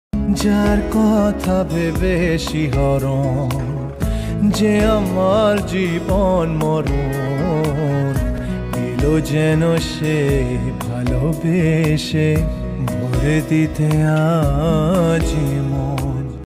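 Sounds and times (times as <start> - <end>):
sad romantic Bangla song: 0.2 - 16.4.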